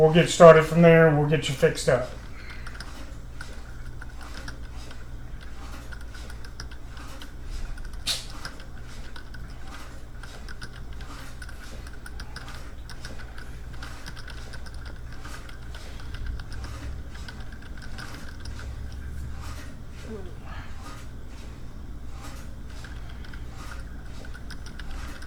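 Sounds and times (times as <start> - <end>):
speech: 0.0 - 2.2
typing on a computer keyboard: 2.3 - 19.1, 22.7 - 25.2.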